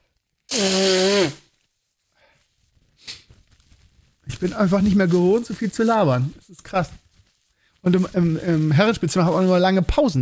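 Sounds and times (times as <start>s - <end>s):
nose blowing: 0.5s - 1.6s
speech: 4.4s - 7.0s, 7.8s - 10.1s.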